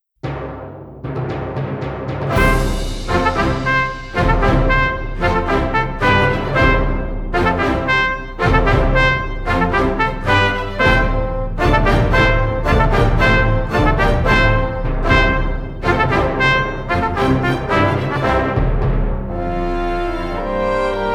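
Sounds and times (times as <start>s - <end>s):
British travel music: 2.3s - 21.1s.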